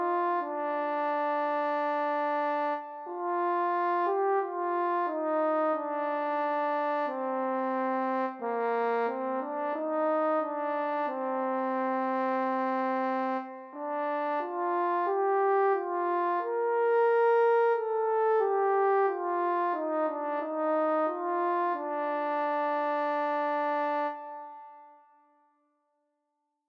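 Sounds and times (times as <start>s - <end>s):
solo horn melody: 0.0s - 25.2s.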